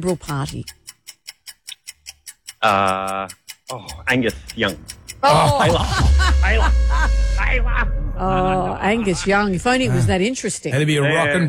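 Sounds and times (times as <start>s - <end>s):
speech: 0.0s - 0.8s, 2.6s - 11.4s
clock ticking countdown: 0.0s - 11.4s
laughter: 5.2s - 10.4s.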